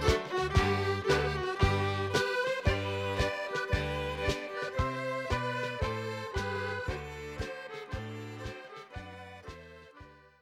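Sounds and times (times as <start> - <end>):
Irish ceili set dance music in G: 0.0 - 10.2.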